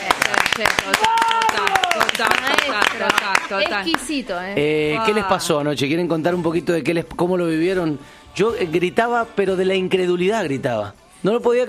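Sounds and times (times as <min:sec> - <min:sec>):
people clapping in applause: 0:00.0 - 0:04.3
speech: 0:02.2 - 0:11.6.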